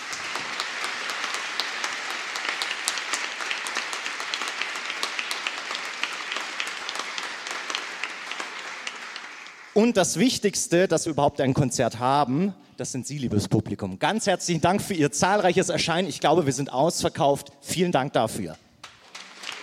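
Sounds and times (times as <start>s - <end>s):
concert audience applause: 0.0s - 10.0s, 19.0s - 19.6s
speech: 9.8s - 18.6s.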